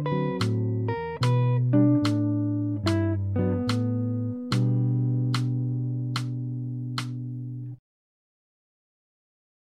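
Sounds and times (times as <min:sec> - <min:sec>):
jazz music: 0:00.0 - 0:07.6.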